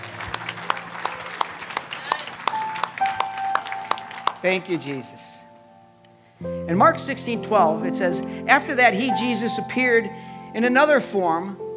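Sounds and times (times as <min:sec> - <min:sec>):
audience clapping: 0:00.0 - 0:05.4
speech: 0:04.4 - 0:05.3, 0:06.4 - 0:11.6.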